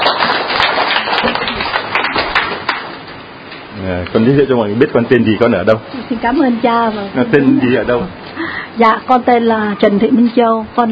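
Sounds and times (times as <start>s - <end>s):
audience clapping at a religious gathering: 0.0s - 3.3s
speech: 4.1s - 8.2s, 8.8s - 10.9s.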